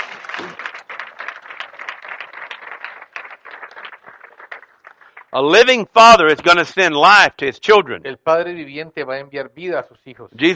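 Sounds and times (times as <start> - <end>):
audience clapping: 0.0 - 5.9
speech: 5.3 - 10.5.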